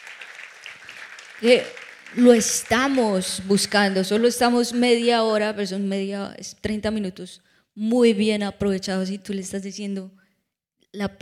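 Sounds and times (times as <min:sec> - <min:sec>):
audience applauding: 0:00.0 - 0:04.6
speech: 0:01.4 - 0:10.2, 0:10.9 - 0:11.2.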